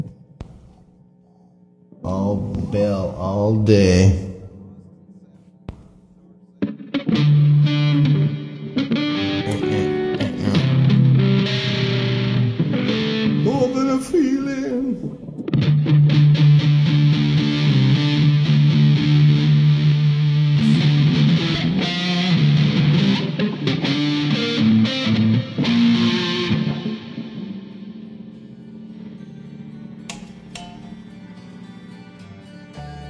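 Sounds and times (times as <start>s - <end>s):
speech: 2.0s - 4.3s
distorted electric guitar playing sustained chords with a low drone: 6.6s - 33.0s.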